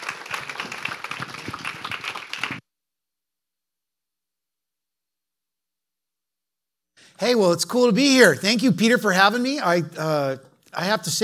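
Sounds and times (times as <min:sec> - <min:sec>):
audience applause: 0:00.0 - 0:02.6
speech: 0:07.2 - 0:11.2.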